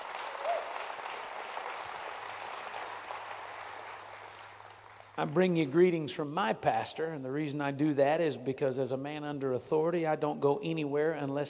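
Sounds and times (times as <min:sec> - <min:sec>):
audience applauding: 0:00.0 - 0:05.6
speech: 0:05.2 - 0:11.4.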